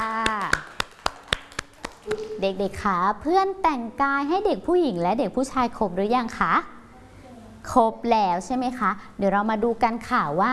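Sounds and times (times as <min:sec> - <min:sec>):
children clapping: 0:00.0 - 0:02.3
speech: 0:02.4 - 0:06.8, 0:07.7 - 0:10.5.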